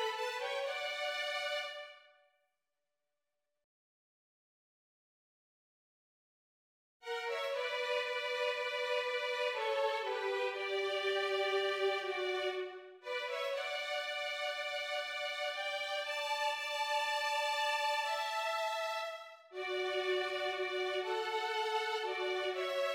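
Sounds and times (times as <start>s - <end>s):
violins: 0.0s - 2.0s, 7.0s - 22.9s.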